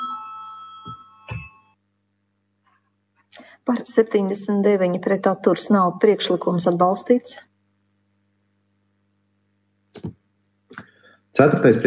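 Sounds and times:
voting bell chime: 0.0 - 1.8
speech: 3.7 - 7.5, 11.4 - 11.8.

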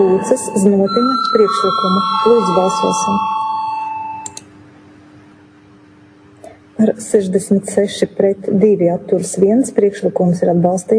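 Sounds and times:
speech: 0.0 - 3.3, 6.8 - 10.9
electronic vote-call bell tone: 0.0 - 4.4.

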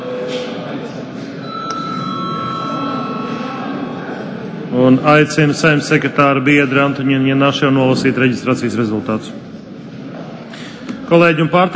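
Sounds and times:
murmur of people talking in parliament chamber: 0.0 - 11.7
parliament chamber bell ringing: 1.4 - 4.5
speech: 4.7 - 9.4, 11.1 - 11.7.

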